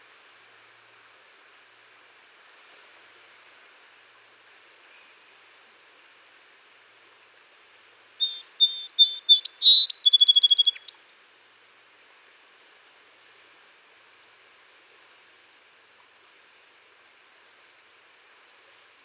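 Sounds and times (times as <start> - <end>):
song sparrow (Melospiza melodia) singing: 8.2 - 10.9.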